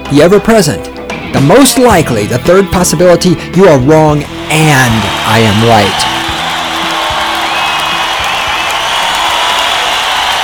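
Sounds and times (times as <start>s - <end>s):
speech: 0.1s - 6.1s
crowd cheering wildly: 4.2s - 10.4s
crowd whoops and whistles: 6.0s - 10.4s.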